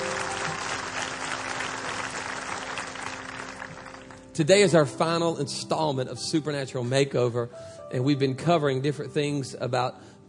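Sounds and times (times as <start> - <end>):
church audience clapping hands: 0.0 - 4.4
speech: 4.4 - 10.1.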